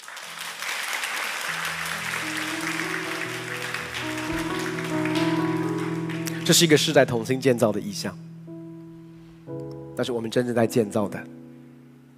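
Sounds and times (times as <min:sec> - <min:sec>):
audience applause: 0:00.0 - 0:06.8
speech: 0:06.5 - 0:08.3, 0:10.0 - 0:11.4.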